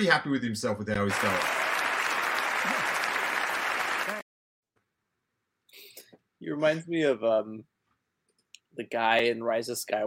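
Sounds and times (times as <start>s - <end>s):
speech: 0.0s - 1.7s, 2.6s - 2.9s, 6.4s - 7.7s, 8.8s - 10.0s
applause: 1.0s - 4.2s.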